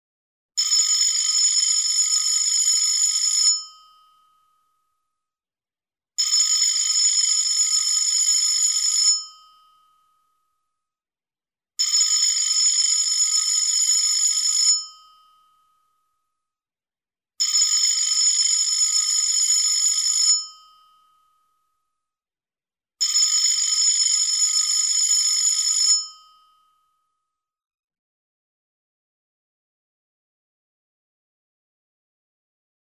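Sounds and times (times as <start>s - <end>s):
telephone: 0.6s - 3.8s, 6.2s - 9.4s, 11.8s - 15.1s, 17.4s - 20.6s, 23.0s - 26.3s.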